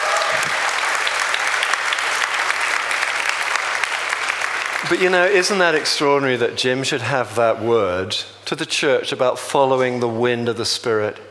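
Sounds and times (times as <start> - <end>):
audience clapping: 0.0 - 6.1
speech: 4.9 - 11.2.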